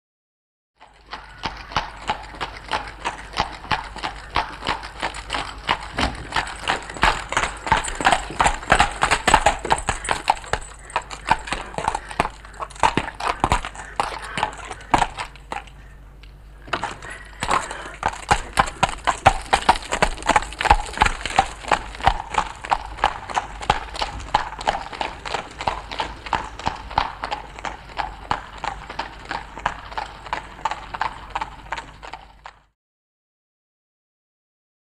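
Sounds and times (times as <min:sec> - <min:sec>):
horse cab: 0:00.8 - 0:32.7.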